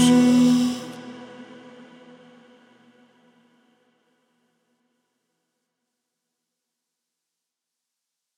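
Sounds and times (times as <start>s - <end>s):
live acoustic music: 0.0s - 1.4s.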